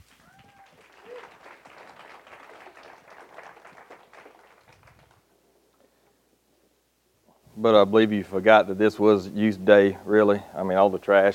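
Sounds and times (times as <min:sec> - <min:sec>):
audience applause welcoming a speaker: 0:00.0 - 0:05.5
speech: 0:07.6 - 0:11.3.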